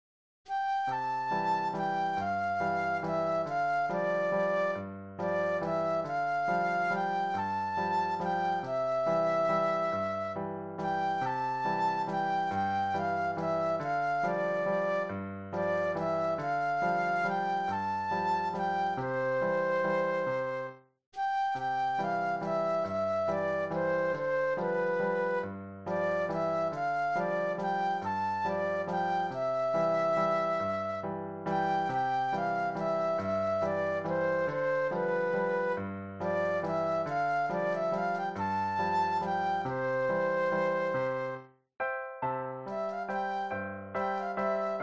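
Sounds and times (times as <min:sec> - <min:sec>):
flute solo: 0:00.5 - 0:41.5, 0:42.6 - 0:44.8.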